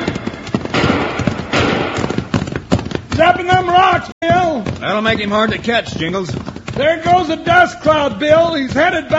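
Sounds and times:
rifle fire from a hidden rifleman: 0.0s - 2.2s
speech: 3.2s - 9.1s.

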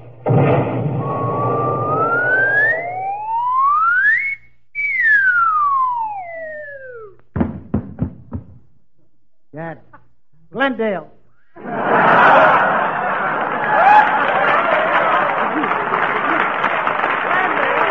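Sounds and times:
comedy cannon firing: 0.2s - 1.6s
gliding whistle: 1.0s - 7.2s
sharp knocks: 7.3s - 8.7s
speech: 10.6s - 11.2s
laughter: 11.6s - 17.9s.

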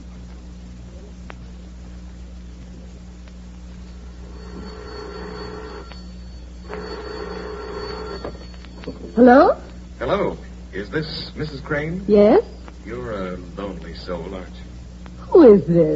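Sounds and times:
steady low electrical hum: 0.0s - 15.9s
telephone bell ringing: 4.2s - 9.6s
speech: 9.2s - 14.6s, 15.3s - 15.9s.

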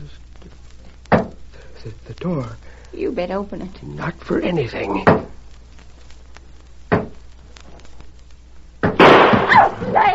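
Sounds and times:
speech: 1.8s - 5.3s
gunshots fired through a door: 8.9s - 10.0s.

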